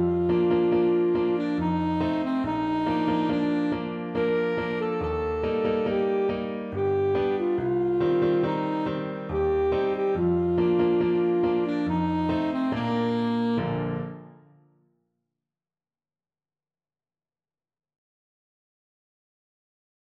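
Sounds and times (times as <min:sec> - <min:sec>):
alto saxophone: 0:00.0 - 0:14.5.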